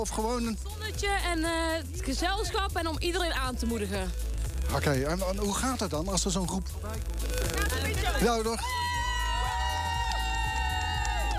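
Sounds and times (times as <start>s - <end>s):
speech: 0.0s - 8.8s
crowd cheering at a street party: 8.5s - 11.3s.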